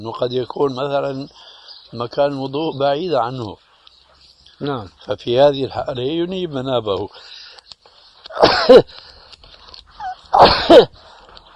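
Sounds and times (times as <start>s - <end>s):
speech: 0.0s - 3.6s, 4.6s - 7.4s, 8.4s - 9.1s
person sneezing: 8.3s - 9.0s, 10.0s - 11.0s.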